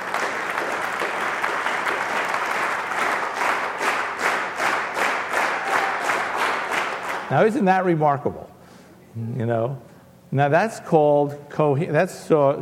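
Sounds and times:
audience clapping together in sync: 0.0s - 7.4s
speech: 7.3s - 8.6s, 9.2s - 12.6s.

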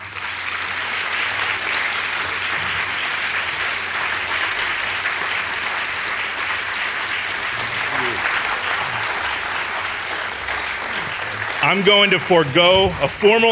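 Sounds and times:
audience applause: 0.0s - 13.4s
laughter: 7.6s - 13.2s
speech: 11.7s - 13.4s.

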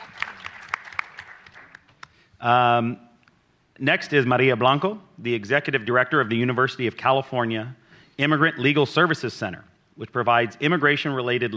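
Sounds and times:
audience applause at a civil-rights legal event: 0.0s - 2.1s
speech: 2.4s - 3.0s, 3.8s - 11.5s.

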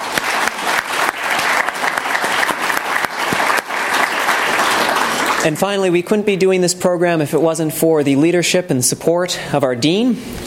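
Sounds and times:
room full of people clapping: 0.0s - 5.9s
speech: 5.4s - 10.4s.

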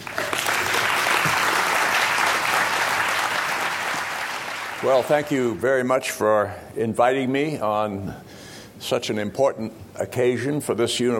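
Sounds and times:
audience applause welcoming a speaker at a university event: 0.0s - 5.6s
speech: 4.8s - 11.1s.

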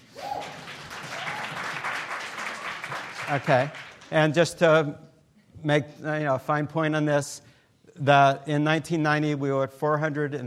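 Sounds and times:
crowd clapping: 0.0s - 4.4s
speech: 3.3s - 10.4s.

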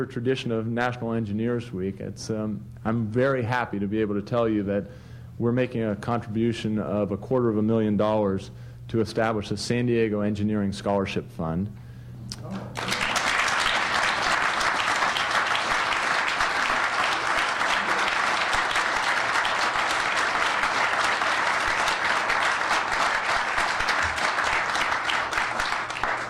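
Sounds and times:
speech: 0.0s - 11.8s
crowd applause: 12.7s - 26.2s.

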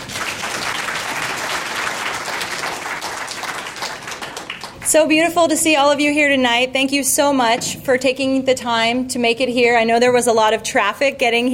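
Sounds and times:
audience applause welcoming speaker: 0.0s - 4.9s
speech: 4.9s - 11.5s.

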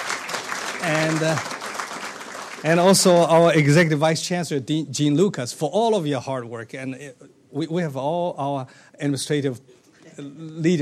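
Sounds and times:
audience applause at a university gathering: 0.0s - 3.9s
speech: 0.8s - 1.6s, 2.6s - 10.8s.

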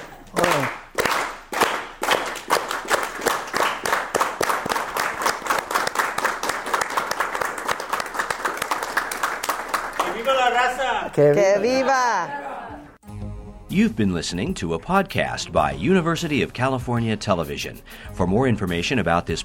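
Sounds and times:
audience clapping in unison: 0.0s - 11.5s
speech: 11.2s - 12.4s, 13.8s - 19.4s.

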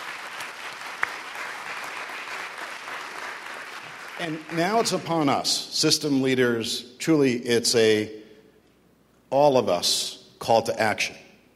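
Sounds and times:
round of applause: 0.0s - 5.1s
speech: 4.2s - 8.2s, 9.3s - 11.2s.

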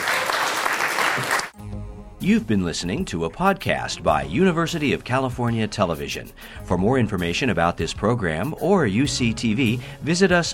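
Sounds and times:
audience applause: 0.0s - 1.6s
speech: 2.2s - 10.5s.

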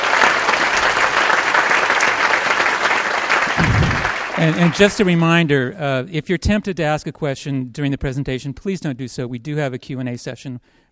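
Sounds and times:
crowd applause: 0.0s - 5.5s
speech: 4.4s - 10.9s.

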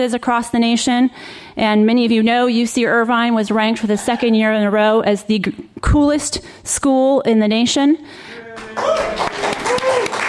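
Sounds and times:
speech: 0.0s - 9.3s
audience applause: 8.5s - 10.2s
cheering voices: 8.5s - 10.2s.

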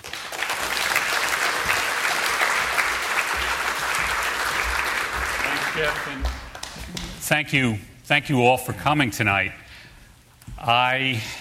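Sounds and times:
audience applauding to welcome a speaker to the podium: 0.0s - 7.2s
speech: 5.8s - 6.4s, 7.3s - 9.6s, 10.6s - 11.3s.

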